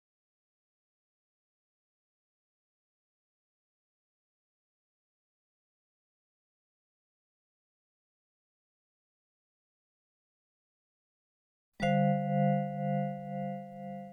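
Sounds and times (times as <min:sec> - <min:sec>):
piano and vibraphone main verse: 0:11.8 - 0:14.1.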